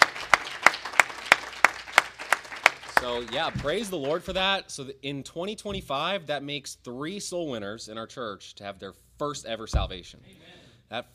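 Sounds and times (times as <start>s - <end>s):
church congregation clapping for a member's first salvation: 0.0s - 4.6s
speech: 3.0s - 11.1s.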